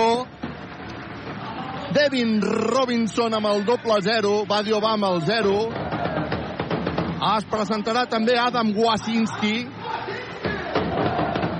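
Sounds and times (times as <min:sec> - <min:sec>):
arena crowd roaring and shouting during player introductions: 0:00.0 - 0:11.5
speech: 0:01.9 - 0:05.8, 0:07.2 - 0:09.8.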